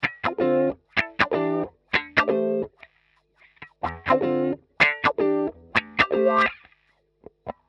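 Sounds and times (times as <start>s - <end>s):
wah-wah guitar chords D E A: 0.0s - 2.8s, 3.5s - 6.7s.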